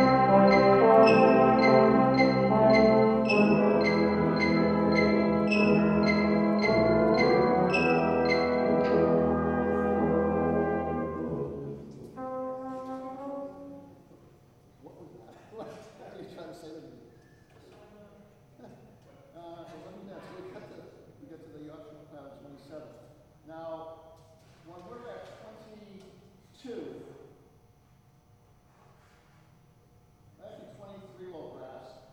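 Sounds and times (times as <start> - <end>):
brass instruments: 0.0 - 14.1.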